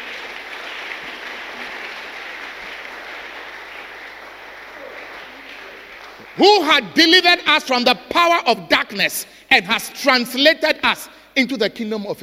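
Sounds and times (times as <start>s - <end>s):
audience clapping: 0.0s - 7.4s
speech: 6.4s - 12.2s.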